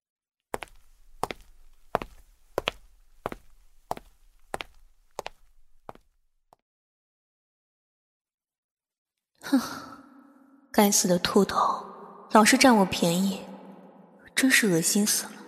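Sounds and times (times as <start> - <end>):
footsteps of a person walking away: 0.6 - 6.2
speech: 9.5 - 9.8, 10.8 - 13.5, 14.4 - 15.4.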